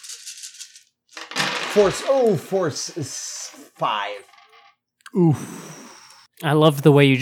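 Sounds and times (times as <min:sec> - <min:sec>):
dice tumbling across a hard surface: 0:00.0 - 0:04.7
speech: 0:01.8 - 0:04.3, 0:05.1 - 0:05.7, 0:06.4 - 0:07.2.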